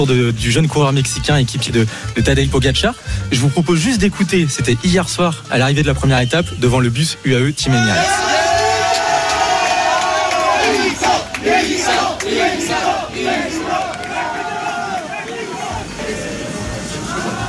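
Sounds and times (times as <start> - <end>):
speech: 0.0 - 8.4
shouts and cheers: 7.7 - 17.4
large crowd of supporters chanting for a cyclist: 7.8 - 17.4.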